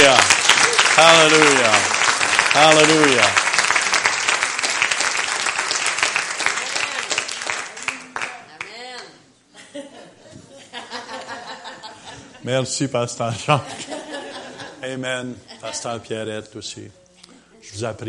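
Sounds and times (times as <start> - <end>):
audience applause: 0.0 - 8.4
speech: 1.0 - 3.4, 12.5 - 13.9, 14.8 - 17.0, 17.7 - 18.0
laughter: 9.5 - 12.5, 13.4 - 15.7.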